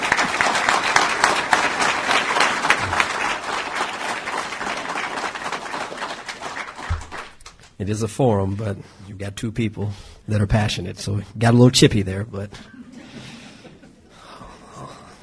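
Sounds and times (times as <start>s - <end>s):
audience applause: 0.0s - 7.7s
speech: 7.8s - 12.8s.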